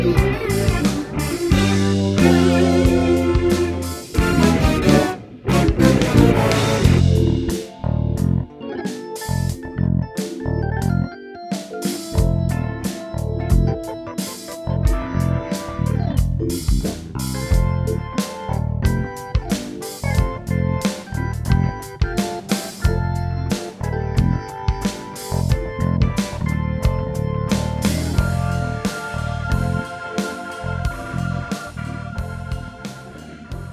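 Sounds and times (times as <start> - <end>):
drum break: 0.0 - 7.8, 11.8 - 12.5, 13.5 - 31.2
bass: 0.0 - 8.6, 9.2 - 11.2, 12.1 - 14.0, 14.6 - 33.7.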